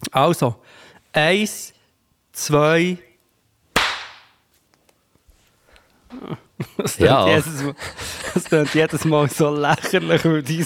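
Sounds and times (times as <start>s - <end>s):
speech: 0.1s - 1.8s, 2.4s - 3.1s, 6.1s - 10.6s
single hand clap: 3.8s - 4.4s
soft rustling burst: 4.5s - 6.0s
laughter: 6.2s - 10.6s.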